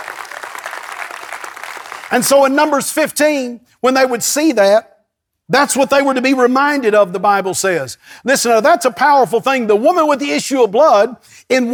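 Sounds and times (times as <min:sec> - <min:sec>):
crowd clapping: 0:00.0 - 0:02.6
speech: 0:02.1 - 0:04.9, 0:05.5 - 0:11.7.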